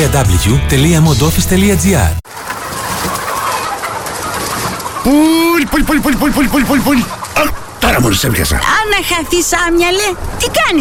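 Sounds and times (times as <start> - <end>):
speech: 0.0 - 2.6, 5.0 - 10.7
hens clucking in a chicken coop: 2.3 - 10.6.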